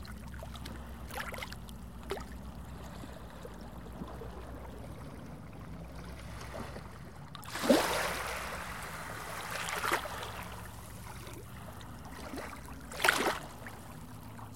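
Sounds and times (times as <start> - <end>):
sea: 0.0 - 14.5.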